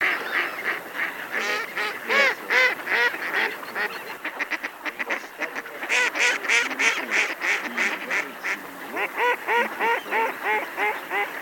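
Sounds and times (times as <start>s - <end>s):
mallard: 0.0s - 11.4s.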